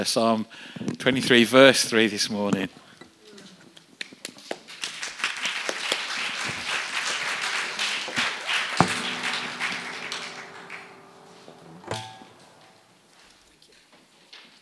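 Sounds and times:
speech: 0.0 - 2.8
round of applause: 4.0 - 11.6.

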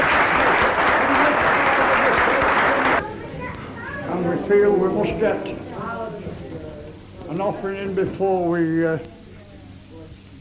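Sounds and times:
audience clapping: 0.0 - 3.0
speech: 4.6 - 5.7, 7.3 - 9.2.

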